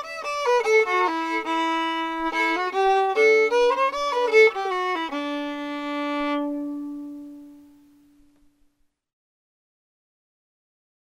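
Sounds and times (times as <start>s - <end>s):
fiddle playing an old reel: 0.0s - 7.7s.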